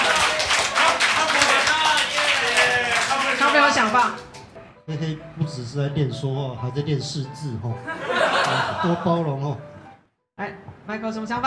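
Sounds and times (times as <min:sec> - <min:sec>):
applause: 0:00.0 - 0:04.6
speech: 0:03.8 - 0:04.3, 0:04.9 - 0:09.7, 0:10.4 - 0:11.4
laughter: 0:07.8 - 0:09.6.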